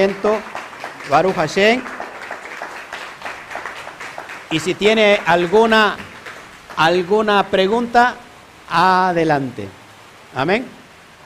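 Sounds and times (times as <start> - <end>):
speech: 0.0 - 1.9, 4.5 - 6.1, 6.8 - 10.8
audience applause: 0.0 - 7.4.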